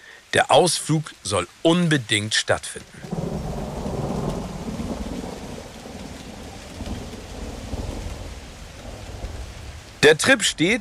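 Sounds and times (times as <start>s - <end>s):
rain: 0.0s - 10.7s
speech: 0.3s - 3.1s, 10.1s - 10.7s
thunder: 3.0s - 9.7s.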